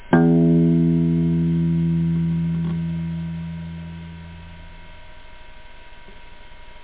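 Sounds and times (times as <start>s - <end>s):
guitar E string: 0.0s - 5.1s.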